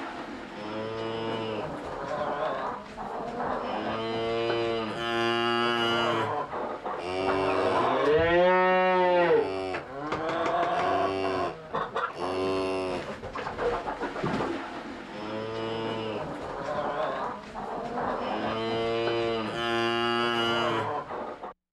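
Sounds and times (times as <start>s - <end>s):
softer farm sounds: 0.0s - 21.6s
cow mooing: 0.6s - 1.7s, 3.7s - 6.3s, 7.0s - 11.6s, 12.2s - 13.0s, 18.2s - 20.9s.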